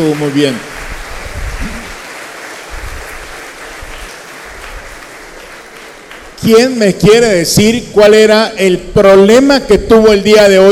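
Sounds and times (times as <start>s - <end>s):
speech: 0.0s - 0.7s, 6.4s - 10.7s
crowd clapping: 0.0s - 7.6s.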